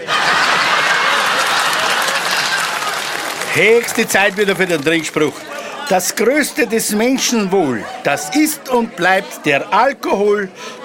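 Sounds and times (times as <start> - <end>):
sizable crowd applauding: 0.0 - 7.7
laughter: 0.0 - 10.8
speech: 3.6 - 10.8.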